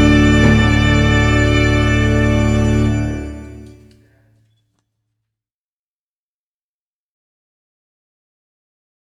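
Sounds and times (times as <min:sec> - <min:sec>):
timpani in wedding ceremony music: 0:00.0 - 0:03.9
two trumpets playing wedding ceremony music: 0:00.0 - 0:04.0.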